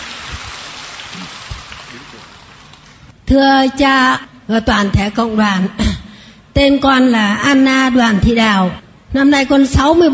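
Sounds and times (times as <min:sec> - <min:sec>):
audience round of applause: 0:00.0 - 0:02.9
speech: 0:03.3 - 0:05.9, 0:06.6 - 0:10.1.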